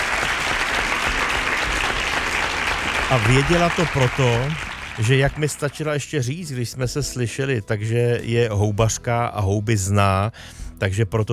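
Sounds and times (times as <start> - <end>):
applause: 0.0 - 5.7
speech: 3.1 - 11.3.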